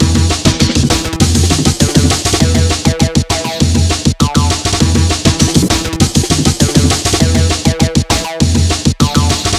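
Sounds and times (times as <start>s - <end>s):
acid electronic music: 0.0s - 9.5s.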